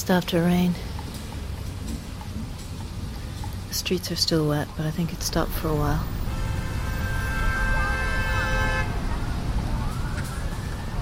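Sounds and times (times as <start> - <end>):
speech: 0.0 - 0.9, 3.7 - 6.2
New York city street traffic: 0.0 - 11.0
horn: 6.2 - 9.2
siren: 6.2 - 11.0.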